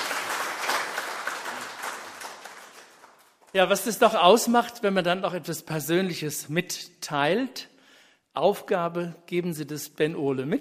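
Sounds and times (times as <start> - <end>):
applause: 0.0 - 3.9
speech: 3.6 - 7.7, 8.4 - 10.5.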